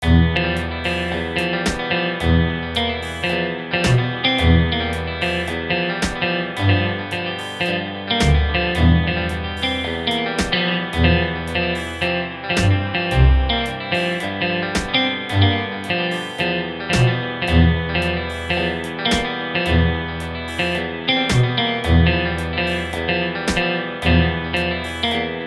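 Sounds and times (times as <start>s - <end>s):
blues music: 0.0s - 25.4s.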